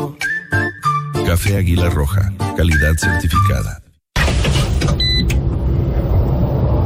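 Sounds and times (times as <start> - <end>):
speech: 1.3 - 3.8
hybrid SUV engine and road noise while driving: 4.4 - 6.8.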